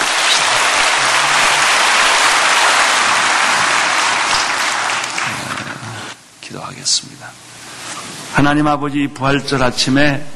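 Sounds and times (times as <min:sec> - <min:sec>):
audience applause: 0:00.0 - 0:06.2
speech: 0:08.4 - 0:10.3.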